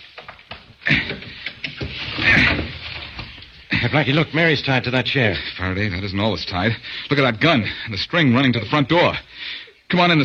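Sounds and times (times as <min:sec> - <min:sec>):
prying a window open with steel: 0:00.0 - 0:03.7
speech: 0:03.9 - 0:10.2.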